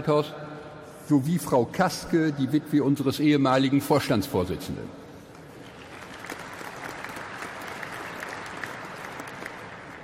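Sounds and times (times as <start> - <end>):
speech: 0.0 - 0.4, 1.1 - 5.0
crowd clapping: 5.3 - 10.0.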